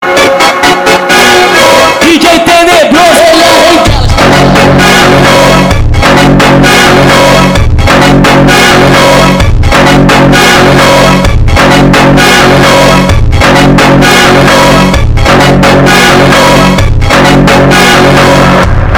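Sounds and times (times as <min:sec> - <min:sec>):
orchestral montage: 0:00.0 - 0:18.9.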